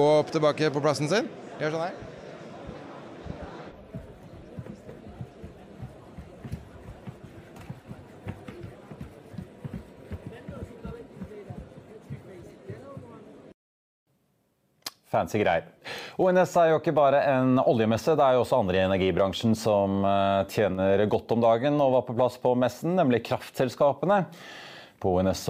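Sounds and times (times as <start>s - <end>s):
speech: 0.0s - 2.2s, 15.2s - 25.4s
robot walking up a staircase: 4.0s - 12.8s.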